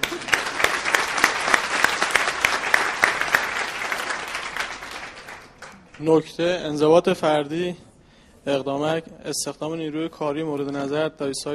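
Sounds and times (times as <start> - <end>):
hand clapping applause: 0.0 - 6.1
speech: 6.0 - 11.5.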